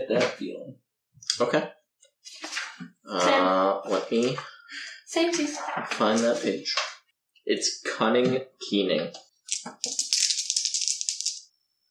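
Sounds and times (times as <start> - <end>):
speech: 0.1 - 0.8, 1.4 - 1.8, 4.1 - 4.5, 5.1 - 10.0
dice being rolled: 9.5 - 11.5.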